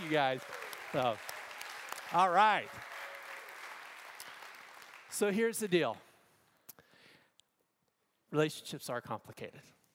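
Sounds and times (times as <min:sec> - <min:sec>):
round of applause: 0:00.0 - 0:06.0
speech: 0:00.1 - 0:01.3, 0:02.1 - 0:02.9, 0:05.2 - 0:06.0, 0:08.3 - 0:09.8.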